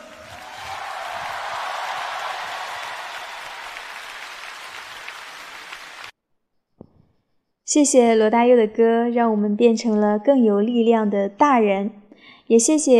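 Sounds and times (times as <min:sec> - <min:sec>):
audience applause: 0:00.0 - 0:06.1
speech: 0:07.7 - 0:12.9.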